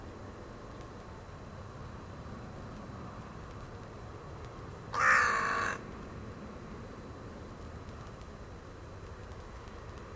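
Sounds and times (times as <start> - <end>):
low background hum: 0.0 - 10.1
bird hoarse call: 4.9 - 5.8.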